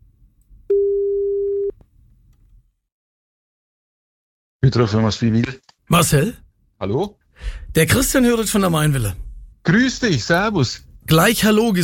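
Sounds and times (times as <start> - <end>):
telephone ringing tone: 0.7 - 1.7
speech: 4.7 - 11.8.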